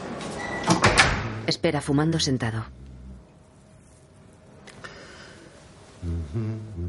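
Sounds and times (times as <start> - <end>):
door opening into a prison infirmary: 0.4 - 1.4
steady hiss: 0.8 - 6.8
speech: 1.5 - 2.8.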